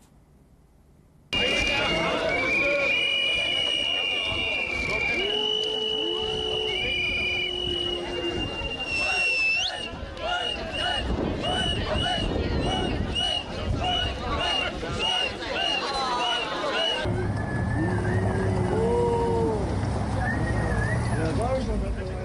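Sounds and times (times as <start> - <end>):
crowd whistling in protest: 1.4 - 21.4.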